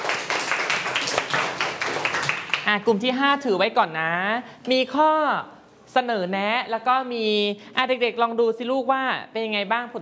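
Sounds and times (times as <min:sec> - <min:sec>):
classroom applause for a student group: 0:00.0 - 0:02.7
speech: 0:02.7 - 0:09.9.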